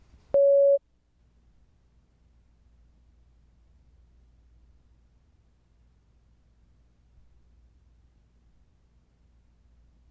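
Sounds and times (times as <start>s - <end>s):
answer prompt electronic beep: 0.4s - 0.8s.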